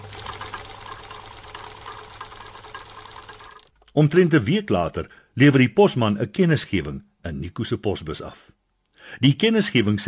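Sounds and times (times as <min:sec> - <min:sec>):
sewing machine running: 0:00.0 - 0:03.7
speech: 0:04.0 - 0:10.0.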